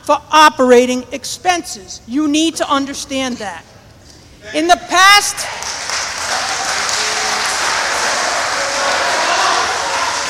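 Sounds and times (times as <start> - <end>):
speech: 0.0 - 3.7, 4.4 - 5.8
audience clapping at a city council meeting: 5.4 - 10.2.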